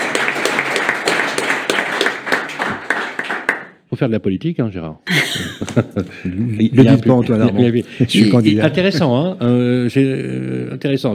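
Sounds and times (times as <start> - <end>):
audience applause: 0.0 - 3.8
speech: 4.0 - 11.1
laughter: 5.1 - 10.1.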